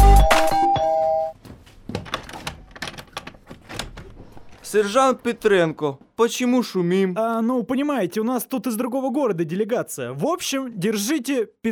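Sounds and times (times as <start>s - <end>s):
doorbell ringing: 0.0s - 1.4s
speech: 4.7s - 11.7s.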